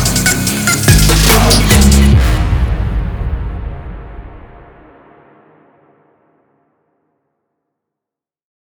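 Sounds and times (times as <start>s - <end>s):
trap beat: 0.0s - 2.4s.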